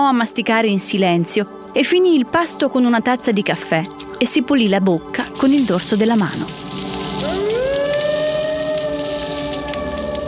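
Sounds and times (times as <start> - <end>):
speech: 0.0 - 6.6
hissing like rain: 0.7 - 9.8
long wolf howl: 6.8 - 10.2.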